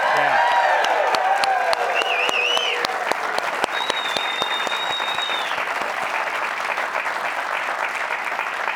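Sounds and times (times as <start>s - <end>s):
live studio audience in Provo, Utah clapping and cheering: 0.0s - 8.7s
high whistles from audience: 1.9s - 2.9s, 3.6s - 5.7s.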